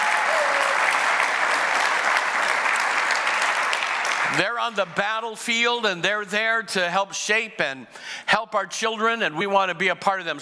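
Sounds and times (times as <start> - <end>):
audience applause for teachers at a morning gathering: 0.0 - 5.0
speech: 4.4 - 10.4.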